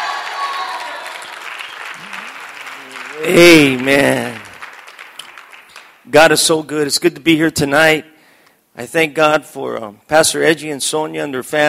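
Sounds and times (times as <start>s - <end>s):
audience hand clapping: 0.0s - 6.2s
speech: 3.2s - 4.4s, 6.1s - 8.1s, 8.8s - 11.6s.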